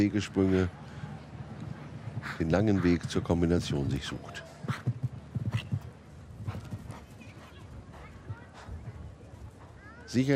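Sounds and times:
speech: 0.0s - 0.8s, 2.2s - 5.0s, 10.1s - 10.3s
horse galloping: 2.0s - 10.1s.

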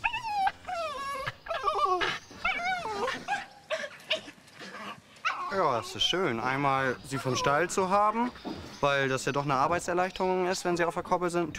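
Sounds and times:
excited farm dog whimpering and yipping: 0.0s - 6.2s, 6.9s - 8.4s
speech: 5.6s - 11.5s.

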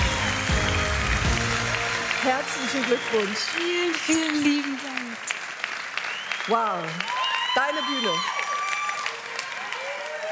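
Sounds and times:
audience applause: 0.0s - 10.3s
speech: 2.2s - 5.4s, 6.4s - 8.4s.

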